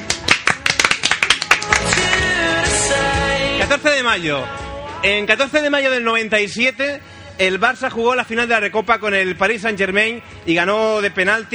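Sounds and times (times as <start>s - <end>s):
applause: 0.0s - 2.5s
speech: 3.7s - 11.5s.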